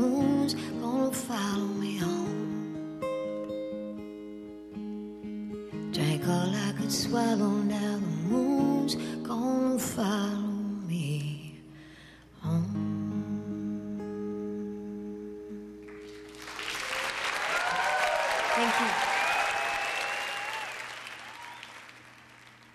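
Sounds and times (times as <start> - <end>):
sustained music: 0.0 - 16.8
speech: 6.9 - 10.4
audience applause on a live album: 15.9 - 22.7
whistles and cheers: 16.5 - 22.6.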